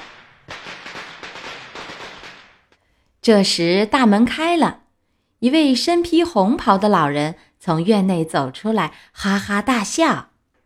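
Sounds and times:
string of firecrackers crackling and popping: 0:00.0 - 0:02.8
speech: 0:03.2 - 0:04.8, 0:05.4 - 0:10.3.

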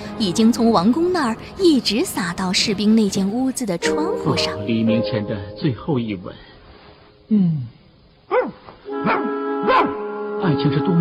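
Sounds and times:
speech: 0:00.2 - 0:06.5, 0:07.3 - 0:08.6, 0:09.8 - 0:10.9
dog barking: 0:08.3 - 0:10.1.

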